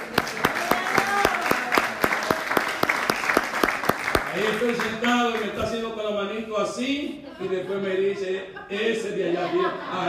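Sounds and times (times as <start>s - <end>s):
audience applause: 0.0s - 5.6s
speech: 6.7s - 10.0s
laughter: 7.0s - 10.0s.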